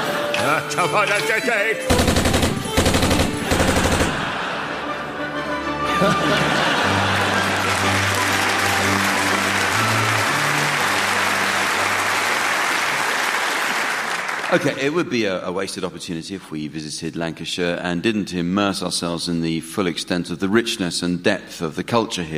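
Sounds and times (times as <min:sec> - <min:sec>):
speech: 0:00.4 - 0:02.2, 0:06.0 - 0:06.8, 0:14.5 - 0:22.3
machine gun fire from a costumed figure at a comedy event: 0:01.9 - 0:04.4
laughter: 0:03.4 - 0:13.8.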